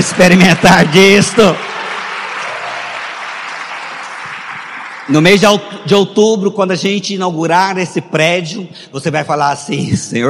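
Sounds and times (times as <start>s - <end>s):
round of applause: 0.0s - 5.6s
speech: 0.2s - 1.7s, 5.1s - 10.2s.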